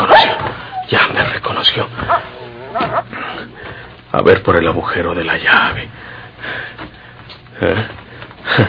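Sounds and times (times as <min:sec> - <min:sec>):
dog barking and whimpering: 0:00.1 - 0:00.9, 0:02.0 - 0:03.1
speech: 0:04.1 - 0:06.7, 0:07.6 - 0:08.6.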